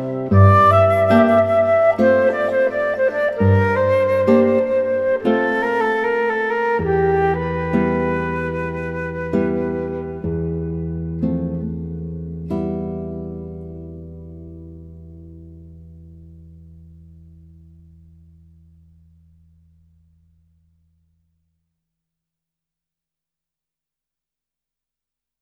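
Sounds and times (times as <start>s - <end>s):
gnossienne for piano: 0.0s - 11.8s.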